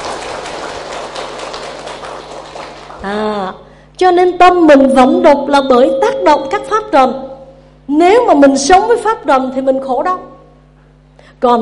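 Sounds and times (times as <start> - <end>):
audience applause: 0.0 - 3.0
speech: 3.0 - 7.3, 7.9 - 10.3, 11.4 - 11.5.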